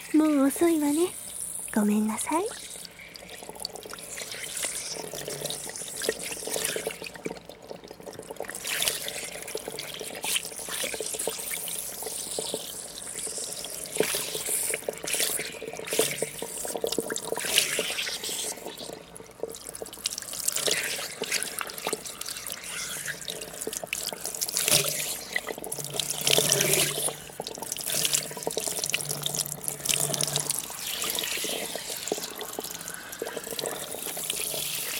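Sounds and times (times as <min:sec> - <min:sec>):
shower water rinsing hair: 0:00.0 - 0:34.9
speech: 0:00.1 - 0:02.8.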